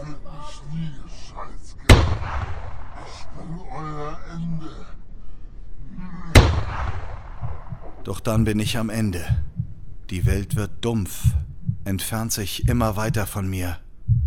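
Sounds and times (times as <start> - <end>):
gunfire: 1.9 - 3.3, 6.4 - 8.0
speech: 8.1 - 9.5, 10.1 - 13.8.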